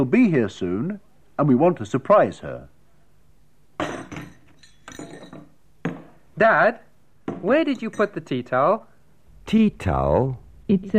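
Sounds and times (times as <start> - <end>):
speech: 0.0 - 2.7, 6.4 - 8.9, 9.5 - 10.9
dishes, glasses and cutlery clinking as a table is laid: 3.8 - 6.1, 7.3 - 8.3.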